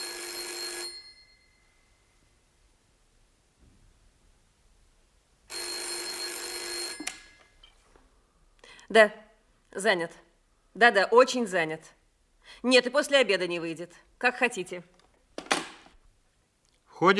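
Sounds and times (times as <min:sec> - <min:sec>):
telephone ringing: 0:00.0 - 0:01.7, 0:05.5 - 0:07.6
speech: 0:08.9 - 0:09.2, 0:09.8 - 0:10.2, 0:10.8 - 0:15.0, 0:17.0 - 0:17.1.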